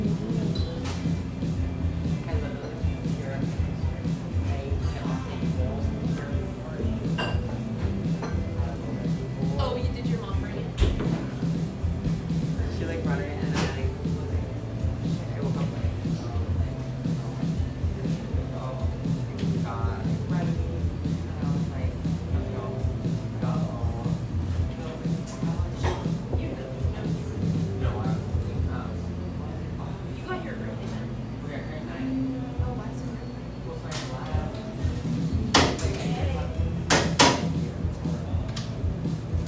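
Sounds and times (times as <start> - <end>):
café chatter of overlapping voices: 0.0 - 39.4
dishes and cutlery clinking: 7.0 - 8.6.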